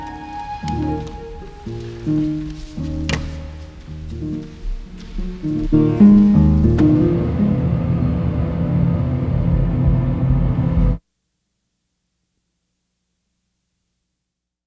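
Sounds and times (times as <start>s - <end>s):
instrumental music: 0.0s - 11.0s.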